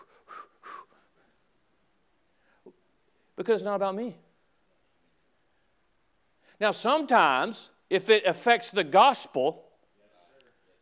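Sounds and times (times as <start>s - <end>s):
deep breaths: 0.0s - 1.5s, 2.3s - 3.3s
speech: 3.4s - 4.2s, 6.6s - 9.6s.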